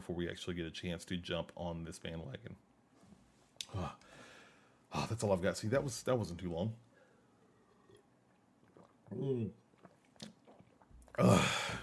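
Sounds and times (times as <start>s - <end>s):
speech: 0.1s - 2.7s, 3.7s - 4.1s, 4.9s - 6.9s, 9.1s - 9.6s, 11.2s - 11.8s
person drinking water: 7.4s - 11.8s.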